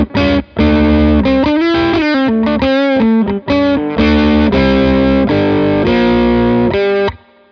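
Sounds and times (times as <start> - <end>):
distorted electric guitar riff with double stops: 0.0 - 7.5.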